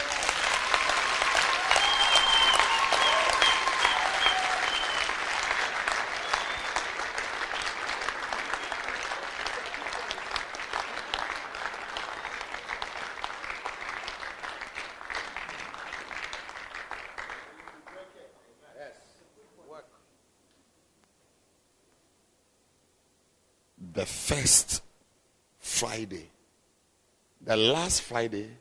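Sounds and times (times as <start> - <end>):
people clapping hands: 0.0 - 18.3
speech: 24.3 - 24.8, 25.8 - 26.4, 27.5 - 28.5.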